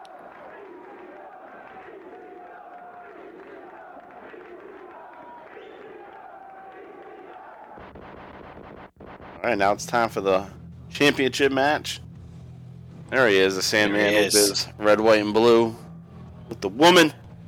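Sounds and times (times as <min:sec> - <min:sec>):
wrestling crowd at a 1995 ECW event cheering and chanting: 0:00.0 - 0:08.4, 0:13.7 - 0:15.3
speech: 0:09.4 - 0:12.0, 0:13.1 - 0:15.8, 0:16.6 - 0:17.2.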